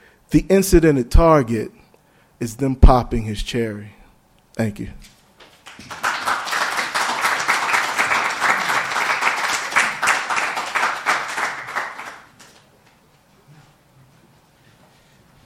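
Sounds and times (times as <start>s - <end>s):
speech: 0.3s - 1.8s, 2.4s - 4.0s, 4.6s - 5.2s
audience applause after a poem: 5.6s - 12.4s.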